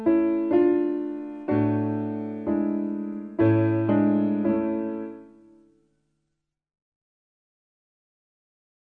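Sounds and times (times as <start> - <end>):
piano: 0.0 - 6.4.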